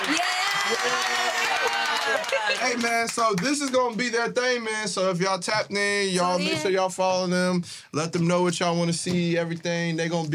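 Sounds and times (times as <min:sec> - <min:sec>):
people cheering: 0:00.0 - 0:04.0
crowd hand clapping: 0:00.0 - 0:04.6
speech: 0:00.8 - 0:10.3.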